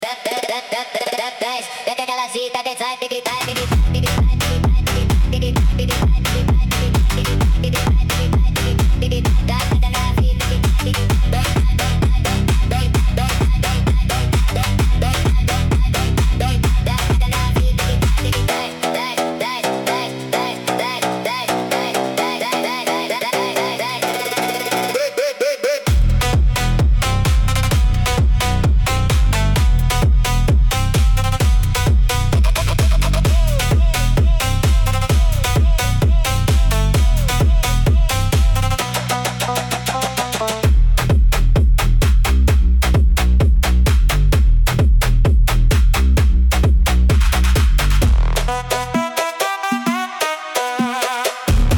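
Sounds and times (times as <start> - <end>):
phonk music: 0.0 - 51.7.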